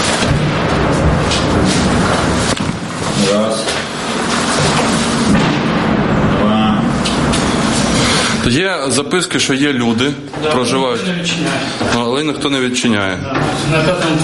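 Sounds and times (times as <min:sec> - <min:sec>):
constant loud rumbling roar: 0:00.0 - 0:08.5
heavy booms of shelling: 0:00.0 - 0:08.5
speech: 0:08.5 - 0:14.2.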